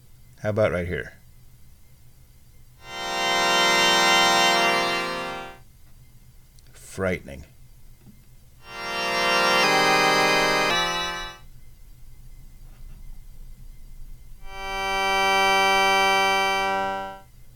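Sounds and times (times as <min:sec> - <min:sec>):
speech: 0:00.4 - 0:01.2, 0:07.0 - 0:07.6
harsh buzzy honking synthesizer tone: 0:02.8 - 0:05.6, 0:08.6 - 0:11.4, 0:14.4 - 0:17.3.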